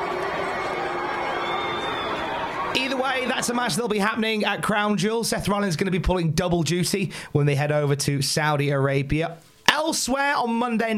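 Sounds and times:
wrestling crowd at Monday Night Raw reacting to a main-event match: 0.0 - 4.0
speech: 2.8 - 10.9.

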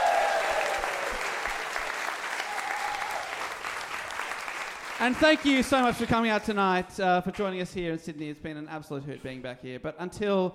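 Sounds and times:
audience applause at the Giant Dwarf Theatre: 0.0 - 6.5
speech: 5.0 - 10.5.

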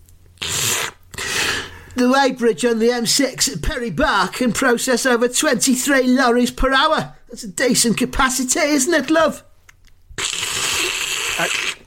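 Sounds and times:
slurping hot chocolate drink: 0.4 - 1.7, 10.2 - 11.8
speech: 2.0 - 9.5, 11.4 - 11.8.

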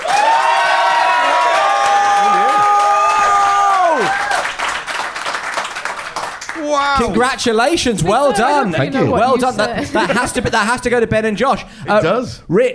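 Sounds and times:
audience applauding and cheering: 0.0 - 7.9
speech: 6.8 - 12.7
laughter: 8.0 - 11.0.

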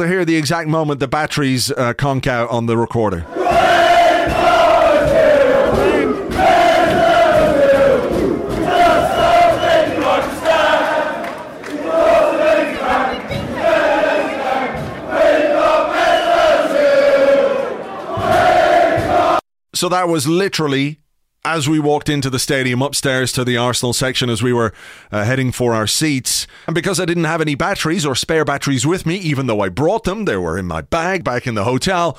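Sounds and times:
speech: 0.0 - 5.2, 19.8 - 32.1
football fans chanting in the stadium before a game: 3.2 - 19.4.

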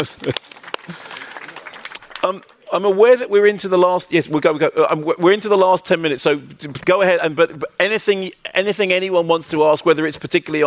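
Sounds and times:
speech: 0.0 - 1.1, 2.3 - 10.6
audience round of applause after a talk: 0.0 - 2.7.

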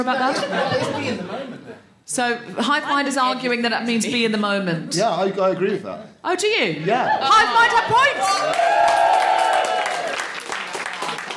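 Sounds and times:
laughter: 0.0 - 1.9
speech: 0.0 - 9.1
audience cheering: 7.1 - 11.3.

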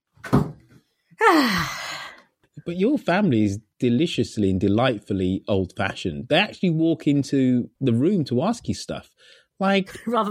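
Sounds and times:
door being shut with a thump: 0.2 - 0.6
speech: 1.3 - 1.8, 2.6 - 10.3.

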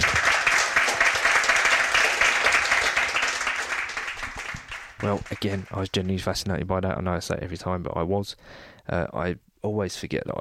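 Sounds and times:
room full of people applauding: 0.0 - 6.4
speech: 5.0 - 10.3.

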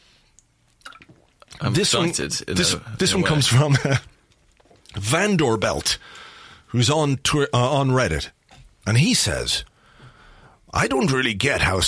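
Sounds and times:
person taking a drink of water: 0.3 - 1.6, 4.3 - 5.0
speech: 1.6 - 4.1, 5.1 - 9.7, 10.7 - 11.8.

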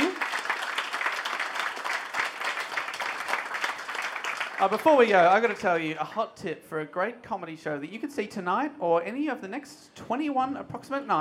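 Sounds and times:
audience applause: 0.0 - 5.6
speech: 4.6 - 11.1.

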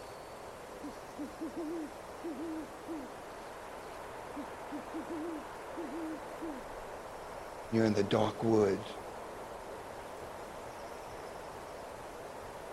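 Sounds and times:
owl hooting: 0.8 - 3.2, 4.3 - 6.7
speech: 1.2 - 3.3, 4.4 - 6.8, 7.7 - 9.0.

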